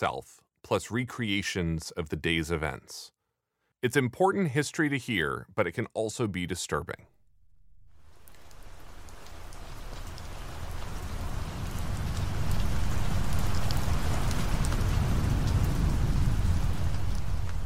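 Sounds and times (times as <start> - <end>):
speech: 0.0 - 3.2, 3.8 - 7.2
rain of storm: 7.8 - 17.6
distant thunder of storm: 9.7 - 17.6.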